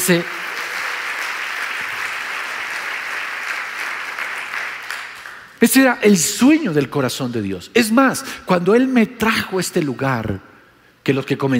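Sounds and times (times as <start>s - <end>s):
speech: 0.0s - 0.4s, 5.6s - 10.5s, 11.1s - 11.5s
applause: 0.0s - 5.7s.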